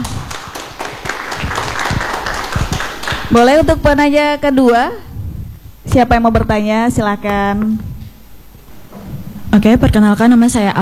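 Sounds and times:
audience applause: 0.0s - 3.4s
speech: 3.3s - 5.1s, 6.0s - 7.9s, 9.5s - 10.8s.

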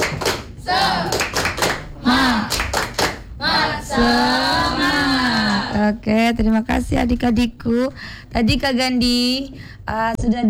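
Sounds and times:
group clapping a rhythmic cheer: 0.0s - 7.6s
many voices chanting and shouting: 0.6s - 6.0s
speech: 6.0s - 10.4s.

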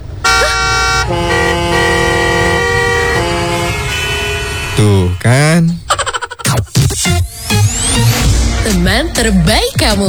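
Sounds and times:
car horn blaring: 0.0s - 5.6s
low traffic engine rumble: 0.0s - 10.0s
speech: 4.8s - 5.8s, 8.9s - 10.0s.

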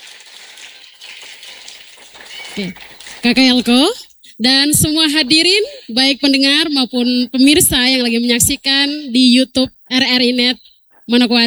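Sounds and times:
crowd applauding: 0.0s - 4.2s
speech: 2.6s - 11.4s.

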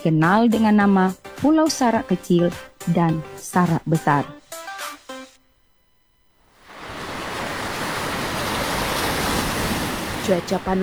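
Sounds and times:
speech: 0.0s - 4.4s, 10.3s - 10.8s
beach waves and surf: 6.5s - 10.8s.

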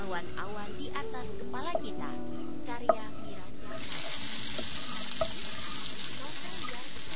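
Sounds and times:
speech: 0.1s - 4.0s
food frying in a pan while cooking: 3.8s - 7.1s.

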